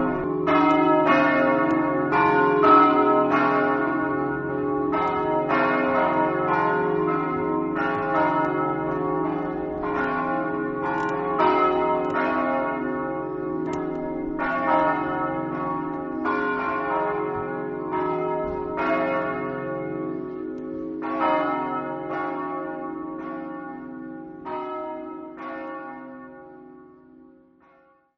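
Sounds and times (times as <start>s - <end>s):
church bells ringing in Muzzana: 0.0s - 28.1s.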